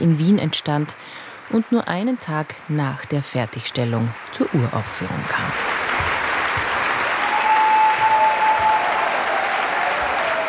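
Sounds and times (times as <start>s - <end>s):
speech: 0.0s - 5.7s
large concert audience applauding for an encore: 4.1s - 10.4s.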